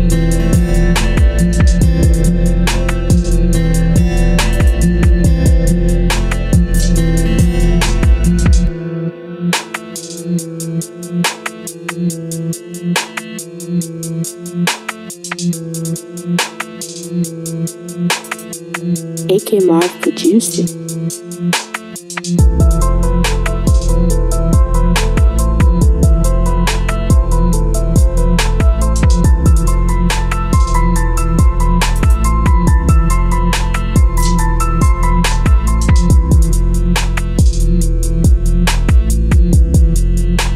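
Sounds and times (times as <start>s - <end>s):
trap instrumental beat: 0.0s - 40.5s.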